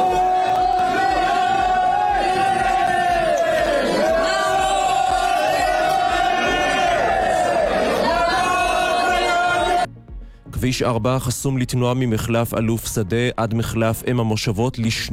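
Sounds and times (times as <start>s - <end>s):
protest crowd shouting while blocking a highway: 0.0s - 9.9s
speech: 10.7s - 15.1s.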